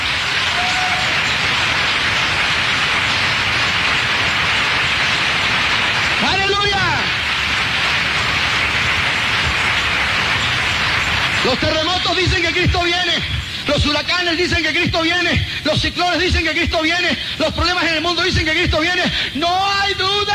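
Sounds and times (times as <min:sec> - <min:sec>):
audience applause: 0:00.0 - 0:15.4
speech: 0:11.5 - 0:20.3.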